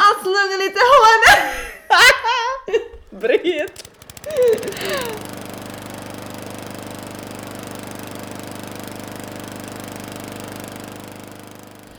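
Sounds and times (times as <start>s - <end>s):
laughter: 1.0s - 5.3s
snow blower engine running: 2.9s - 11.9s.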